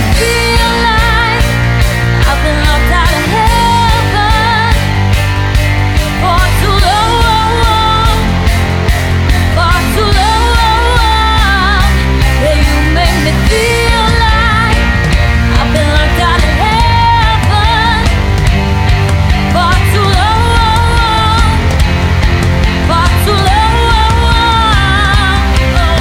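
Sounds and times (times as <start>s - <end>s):
rock pop band playing: 0.0s - 25.9s.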